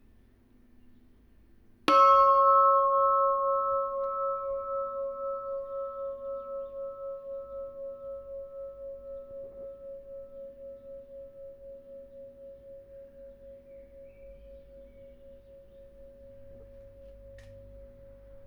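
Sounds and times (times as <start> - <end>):
26 kg bell ringing: 1.9 - 7.8.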